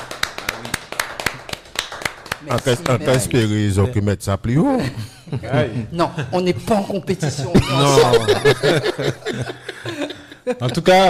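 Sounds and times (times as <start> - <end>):
small group clapping by hand: 0.0 - 3.5
speech: 2.4 - 11.0
laughter: 4.8 - 11.0.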